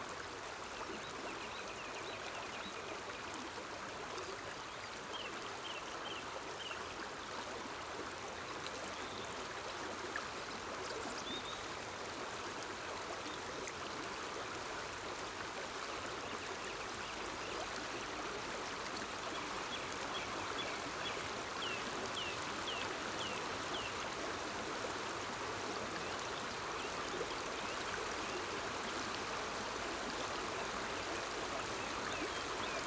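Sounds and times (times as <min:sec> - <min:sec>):
mountain stream: 0:00.0 - 0:32.8.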